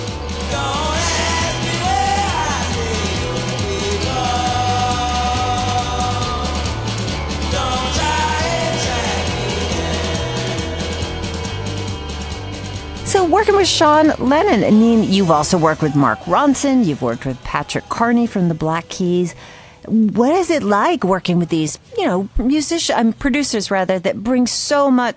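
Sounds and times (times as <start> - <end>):
rock song with female guest vocals: 0.0 - 18.0
speech: 13.3 - 25.1.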